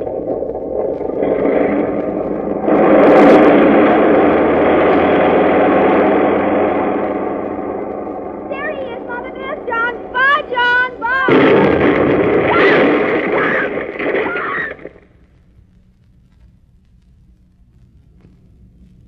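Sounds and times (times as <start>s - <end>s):
airplane motors roaring during takeoff: 0.0s - 15.1s.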